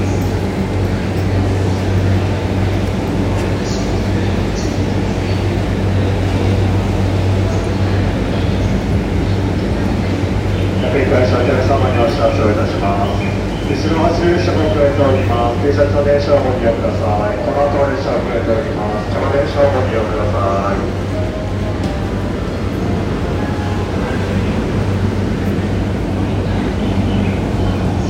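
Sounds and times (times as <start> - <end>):
JR Yamanote Line train at Shibuya: 0.0 - 28.0.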